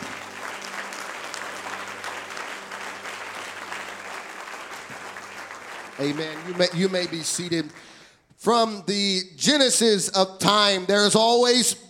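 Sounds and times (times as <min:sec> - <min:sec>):
audience applause: 0:00.0 - 0:08.0
speech: 0:06.0 - 0:11.8.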